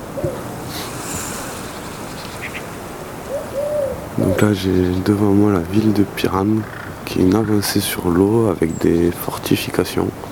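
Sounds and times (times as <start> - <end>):
sea waves on the coast near the town of Piran: 0.0 - 5.5
wind: 0.0 - 10.2
ducks quacking: 0.6 - 5.0
speech: 4.4 - 10.2.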